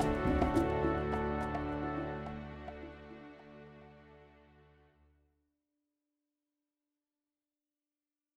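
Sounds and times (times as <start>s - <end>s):
background music: 0.0s - 4.9s.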